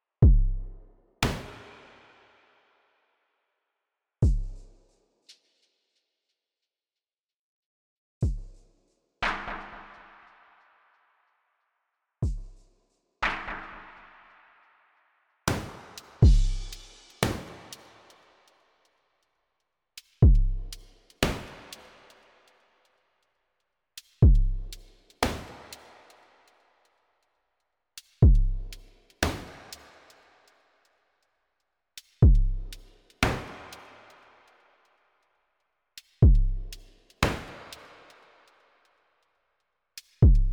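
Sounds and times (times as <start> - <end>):
drums: 0.2 - 0.6, 1.2 - 2.2, 4.2 - 5.4, 8.2 - 10.0, 12.2 - 13.8, 15.5 - 18.6, 20.0 - 22.6, 24.0 - 26.6, 28.0 - 30.5, 32.0 - 34.3, 36.0 - 38.4, 40.0 - 40.5.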